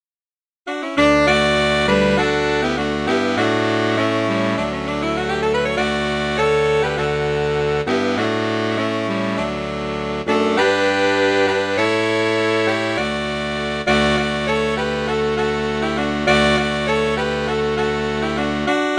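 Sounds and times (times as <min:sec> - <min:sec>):
saxophone quartet AATB: 0:00.7 - 0:18.9.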